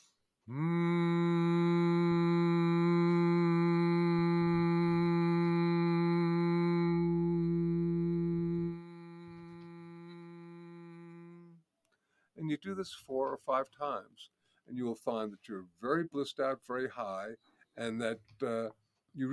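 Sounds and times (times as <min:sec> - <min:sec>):
speech: 0:00.5 - 0:00.8, 0:12.6 - 0:19.3
single voice humming one steady low tone: 0:00.5 - 0:11.6.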